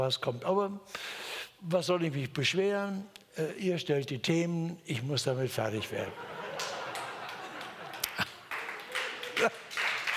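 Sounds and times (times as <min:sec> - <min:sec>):
speech: 0:00.0 - 0:06.7
laughter: 0:05.9 - 0:10.1
audience clapping: 0:06.4 - 0:10.1.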